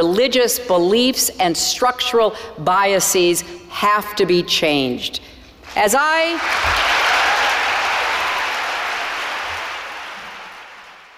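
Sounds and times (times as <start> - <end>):
speech: 0.0 - 6.9
crowd applause: 6.4 - 11.1.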